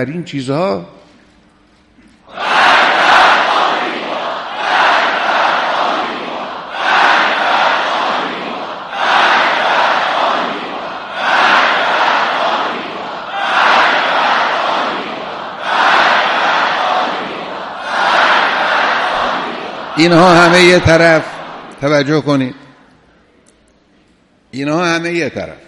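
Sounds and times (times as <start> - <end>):
speech: 0.0 - 1.0, 20.0 - 22.6, 24.6 - 25.6
crowd chanting: 2.3 - 22.3.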